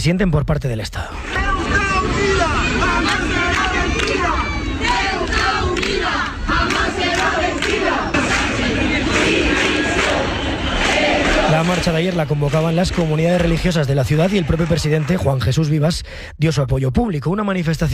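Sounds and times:
speech: 0.0 - 3.4, 11.5 - 17.9
crowd chanting for Pedro Sánchez's resignation at a march in Ceuta: 1.2 - 14.8.

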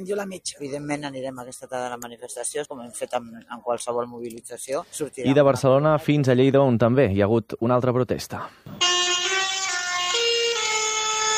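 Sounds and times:
speech: 0.0 - 8.9
tractors honking horns at street protest in the streets of Lleida: 8.8 - 11.3.

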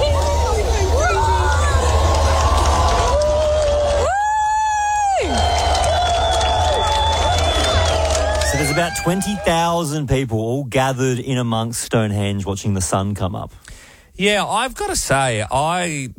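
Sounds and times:
crowd clapping at sunrise: 0.0 - 9.8
speech: 8.8 - 16.1.

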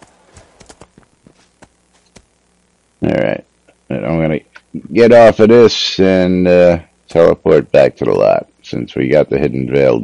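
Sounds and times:
horse hooves clip-clopping in a video game: 0.0 - 2.3
soft hum: 0.0 - 10.0
speech: 5.0 - 10.0.

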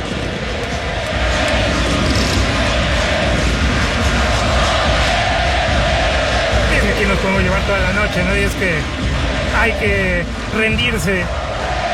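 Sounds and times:
stadium crowd chanting: 0.0 - 11.9
speech: 7.7 - 11.4.

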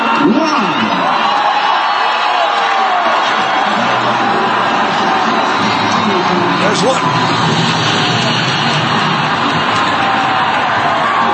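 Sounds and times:
rally crowd cheering: 0.0 - 11.3.

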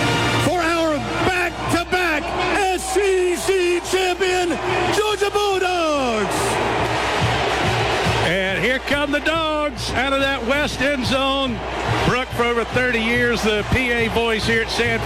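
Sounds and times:
stadium crowd cheering and yelling: 0.0 - 15.0
speech: 9.0 - 15.0.

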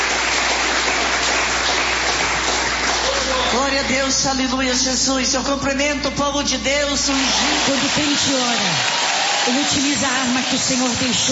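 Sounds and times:
applause: 0.0 - 3.9, 7.1 - 11.3
speech: 3.7 - 11.3.

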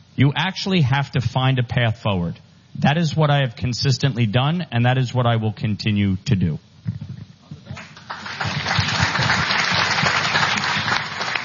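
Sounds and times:
speech: 0.2 - 7.0
audience applause: 7.8 - 11.4.

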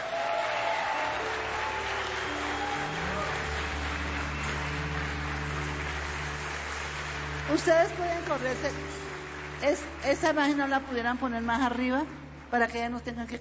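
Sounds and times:
audience applauding: 0.0 - 12.5
speech: 7.5 - 9.0, 9.6 - 13.4.

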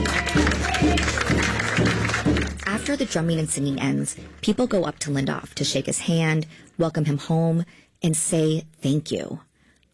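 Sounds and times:
crowd applauding after a drumming and singing performance: 0.0 - 4.5
speech: 2.9 - 9.5.

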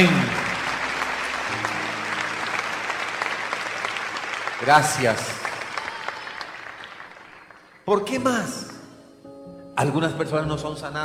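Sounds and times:
speech: 0.0 - 0.4, 4.7 - 5.4, 7.9 - 8.7, 9.8 - 11.0
audience applause: 0.0 - 8.8.

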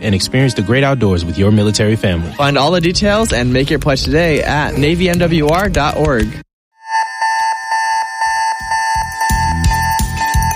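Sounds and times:
speech: 0.0 - 6.4
carbon monoxide alarm beeping: 6.7 - 10.5.

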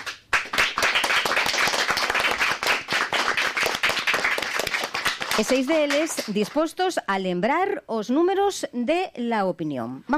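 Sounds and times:
students clapping: 0.0 - 6.7
speech: 5.4 - 10.1.

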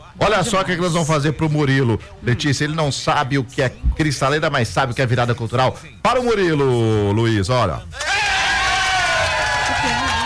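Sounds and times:
speech: 0.3 - 8.2
applause for a guest: 8.0 - 10.2
crowd cheering for a guest: 8.0 - 10.2.

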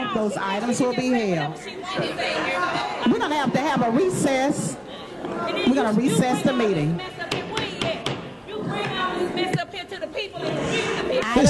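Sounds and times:
disruptive crowd chatter in a meeting: 0.0 - 11.4
speech: 0.1 - 7.2, 9.2 - 11.4.

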